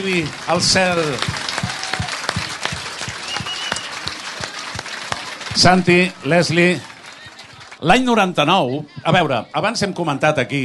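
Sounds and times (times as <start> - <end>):
speech: 0.0 - 1.4, 5.6 - 6.9, 7.8 - 10.6
audience applause: 0.0 - 8.3.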